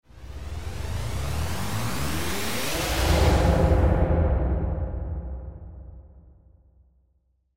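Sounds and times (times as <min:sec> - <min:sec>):
sci-fi spaceship: 0:00.1 - 0:05.6.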